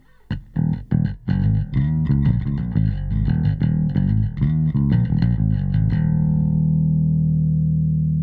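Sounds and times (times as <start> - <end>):
bass: 0.0 - 8.2.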